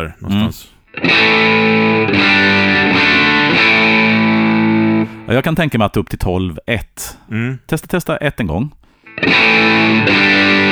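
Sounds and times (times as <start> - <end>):
speech: 0.0 - 2.2, 5.3 - 10.5
heavily distorted electric guitar with high gain: 0.9 - 5.2, 9.1 - 10.6.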